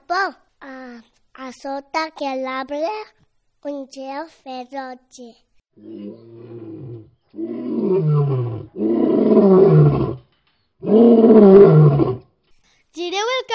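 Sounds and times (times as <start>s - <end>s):
speech: 0.1s - 6.4s, 7.9s - 8.4s, 10.9s - 12.1s
lion roaring: 5.8s - 12.3s.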